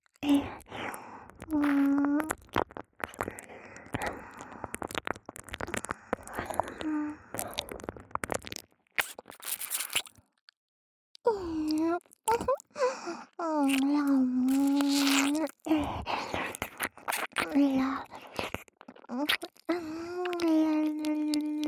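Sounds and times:
person whispering: 0.2s - 2.5s, 3.1s - 8.0s, 11.3s - 12.6s, 13.3s - 21.6s
ear licking sounds: 0.2s - 10.2s, 13.6s - 21.6s.

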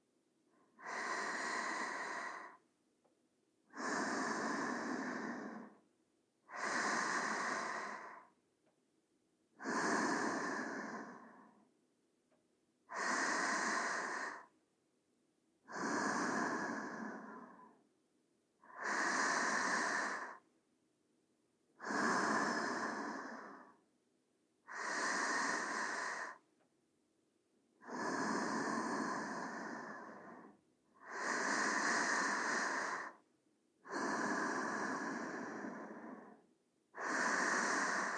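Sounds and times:
sleeping breathing: 0.7s - 2.6s, 3.7s - 5.8s, 6.4s - 8.4s, 9.6s - 11.7s, 12.9s - 14.5s, 15.6s - 17.8s, 18.6s - 20.5s, 21.8s - 23.8s, 24.6s - 26.5s, 27.8s - 33.2s, 33.8s - 38.1s.

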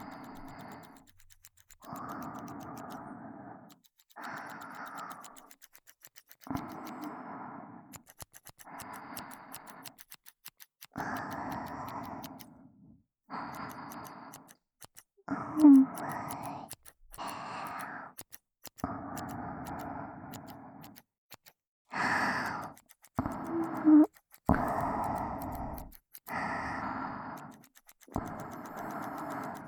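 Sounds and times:
ear hair being trimmed in the right ear: 0.0s - 3.0s, 3.7s - 7.2s, 7.9s - 12.5s, 13.4s - 26.3s, 27.4s - 29.6s.

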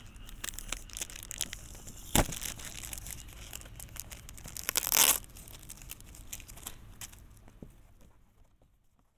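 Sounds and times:
bag of fireworks being opened: 0.2s - 7.3s.

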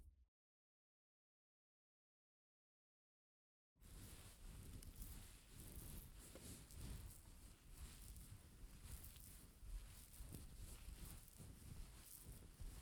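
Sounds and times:
relaxing ASMR massage sounds: 3.9s - 12.8s.

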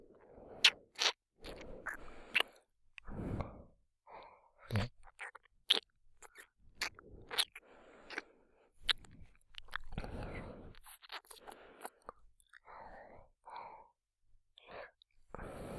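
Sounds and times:
licking the right ear: 0.6s - 2.6s, 4.7s - 8.2s, 8.8s - 12.1s.

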